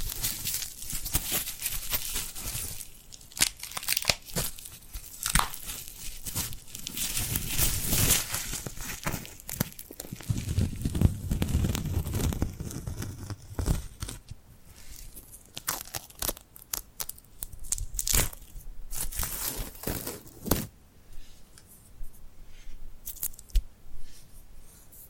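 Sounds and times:
glued hands peeling apart: 0:00.0 - 0:14.3, 0:14.9 - 0:20.7
soft low rub: 0:21.0 - 0:23.0, 0:23.9 - 0:25.0.

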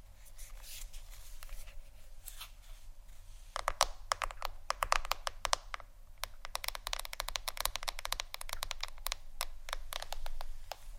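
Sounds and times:
fingers tapping on a phone or tablet screen: 0:03.6 - 0:10.8.

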